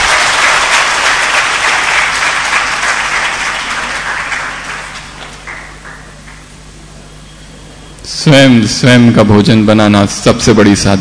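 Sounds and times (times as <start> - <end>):
crowd applauding: 0.0 - 6.5
speech: 8.3 - 10.9.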